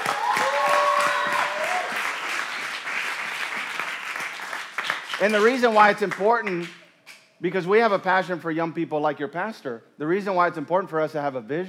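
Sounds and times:
audience clapping: 0.0s - 6.8s
speech: 5.2s - 6.8s, 7.4s - 11.6s.

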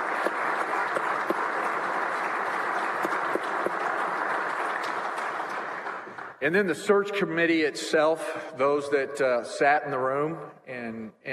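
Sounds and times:
audience applause: 0.0s - 6.5s
speech: 6.4s - 11.2s.

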